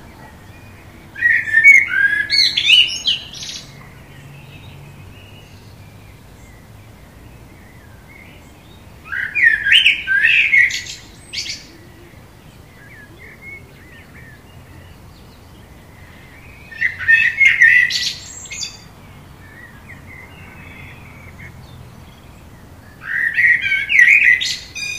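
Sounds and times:
common blackbird singing: 0:00.0 - 0:24.9
soft birds: 0:00.0 - 0:24.9.

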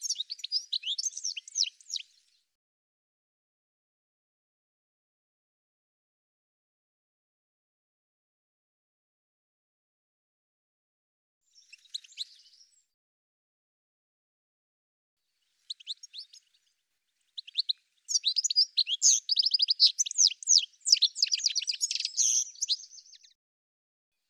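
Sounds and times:
bird calls of high rapid chirps and twittering notes: 0:00.0 - 0:02.4, 0:11.5 - 0:12.8, 0:15.6 - 0:23.4.

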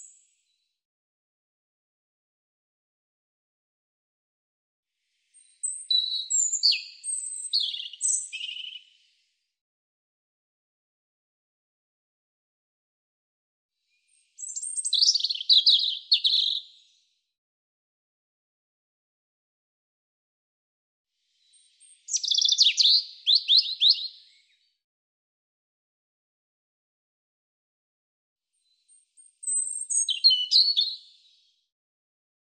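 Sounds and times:
European robin singing high phrases of slurred whistles and trills: 0:05.4 - 0:08.9, 0:14.1 - 0:17.0, 0:21.4 - 0:24.6, 0:28.6 - 0:31.3.

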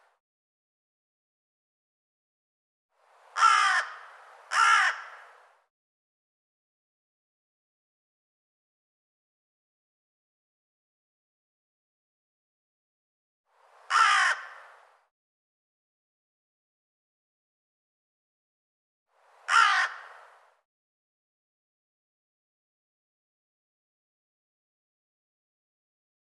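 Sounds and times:
harsh raspy bird caw: 0:03.4 - 0:05.3, 0:13.9 - 0:14.7, 0:19.5 - 0:20.2.

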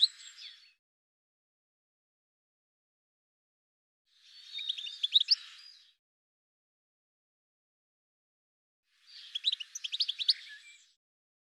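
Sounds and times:
bird chirps and trills: 0:04.2 - 0:05.9, 0:09.0 - 0:10.9.

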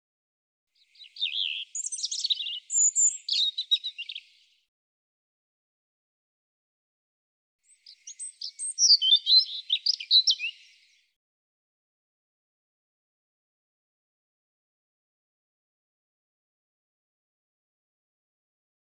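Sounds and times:
European robin singing: 0:00.8 - 0:04.6, 0:07.6 - 0:11.1.

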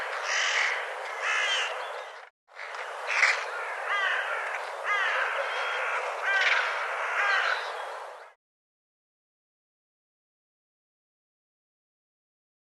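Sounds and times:
bird giving harsh nasal cawing calls: 0:00.1 - 0:01.8, 0:03.1 - 0:08.4.

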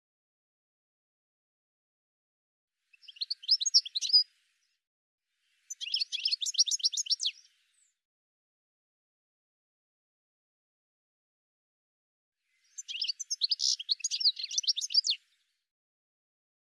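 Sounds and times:
high sharp bird chirps: 0:05.7 - 0:07.4, 0:12.7 - 0:15.2.

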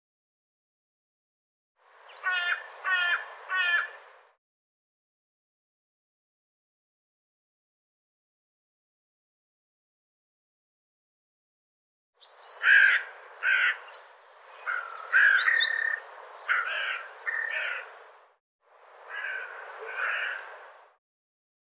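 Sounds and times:
bird giving hoarse squawking caws: 0:02.1 - 0:04.0, 0:12.2 - 0:18.0, 0:19.0 - 0:20.7.

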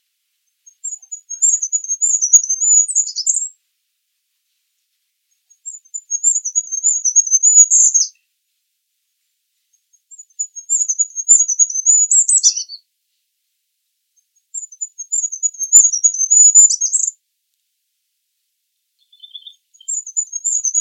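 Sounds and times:
bird singing very high rapid chirps and dense twittering: 0:00.4 - 0:03.6, 0:05.3 - 0:08.2, 0:09.7 - 0:12.8, 0:14.2 - 0:17.2, 0:19.0 - 0:20.8.

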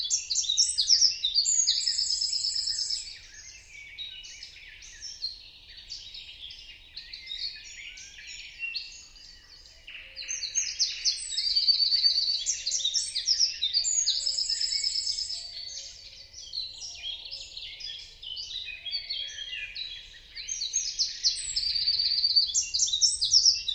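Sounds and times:
birds chirping and trilling: 0:00.0 - 0:23.7.

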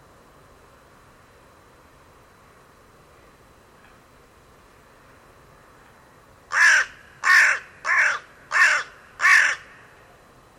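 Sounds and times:
bird cawing: 0:06.5 - 0:09.9.

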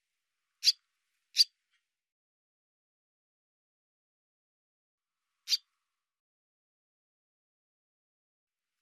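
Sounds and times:
bird chattering: 0:00.6 - 0:01.5, 0:05.5 - 0:05.7.

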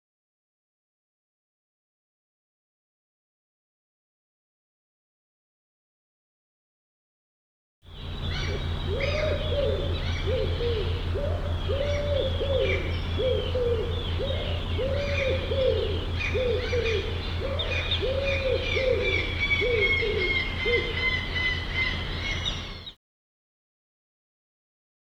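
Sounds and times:
low hooting arched bird calls: 0:07.9 - 0:22.9.

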